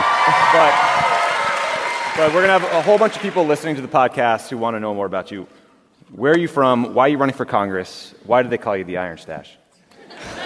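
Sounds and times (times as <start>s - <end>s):
huge audience applause: 0.0s - 3.9s
speech: 0.5s - 1.1s, 2.2s - 10.4s
laughter: 9.9s - 10.4s.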